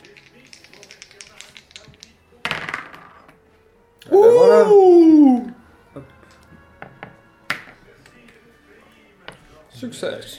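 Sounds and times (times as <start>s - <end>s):
dice being rolled on a table: 0.0s - 3.4s
speech: 4.1s - 5.1s, 9.9s - 10.3s.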